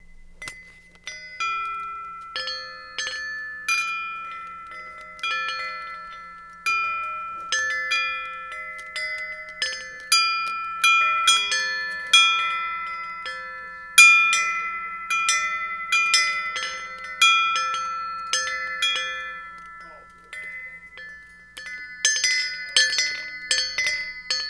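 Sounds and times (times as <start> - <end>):
ship bell ringing: 0.0 - 24.4.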